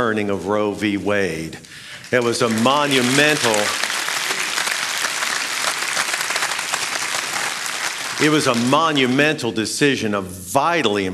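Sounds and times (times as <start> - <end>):
speech: 0.0 - 3.9, 8.2 - 11.1
audience applause: 1.9 - 9.2.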